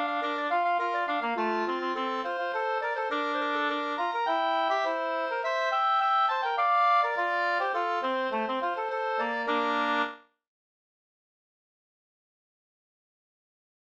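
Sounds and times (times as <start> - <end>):
slangpolska folk dance tune: 0.0 - 10.2.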